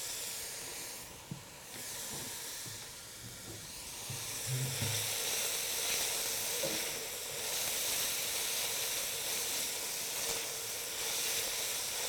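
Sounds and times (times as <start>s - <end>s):
vegetables sweating in a pan with salt and pepper: 0.0s - 12.0s
faint knocks: 4.1s - 5.1s.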